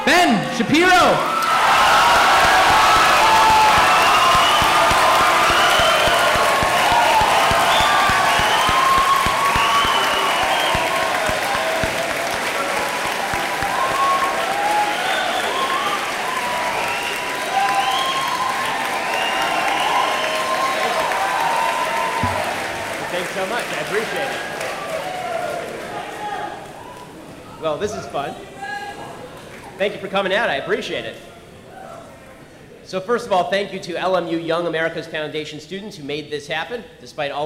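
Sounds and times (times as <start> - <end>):
speech: 0.1 - 1.4, 29.8 - 31.3, 32.9 - 37.4
audience cheering: 0.8 - 27.8.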